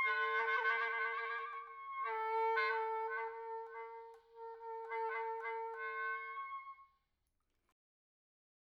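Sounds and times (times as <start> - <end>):
oboe multiphonics: 0.0 - 6.7.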